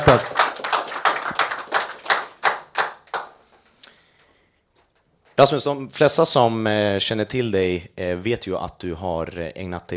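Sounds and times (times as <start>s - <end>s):
live audience applause: 0.0s - 3.4s
speech: 5.4s - 9.9s.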